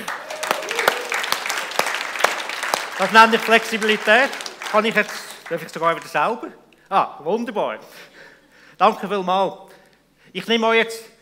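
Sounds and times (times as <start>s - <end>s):
audience applause: 0.0s - 6.4s
speech: 3.0s - 9.7s, 10.3s - 11.1s.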